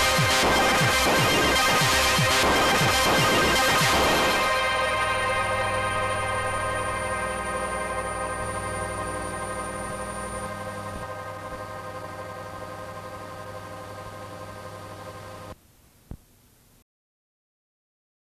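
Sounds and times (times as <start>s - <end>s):
minimal lo-fi Game Boy chiptune made with nanoloop: 0.0s - 11.3s.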